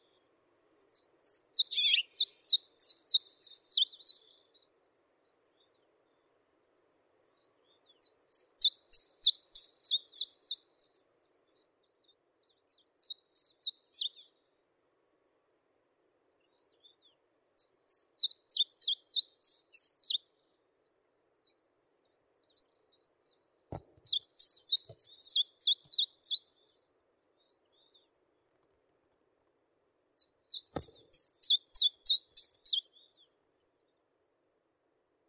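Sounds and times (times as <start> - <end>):
Caucasian chiffchaff Phylloscopus lorenzii singing: 1.0 - 4.3, 7.8 - 11.0, 13.0 - 14.2, 17.6 - 20.2, 23.7 - 26.6, 30.2 - 33.2.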